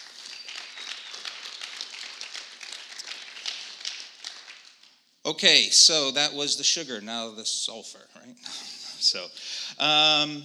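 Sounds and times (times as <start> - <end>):
crowd applause: 0.0 - 5.0
speech: 5.3 - 10.4
laughter: 8.4 - 10.0.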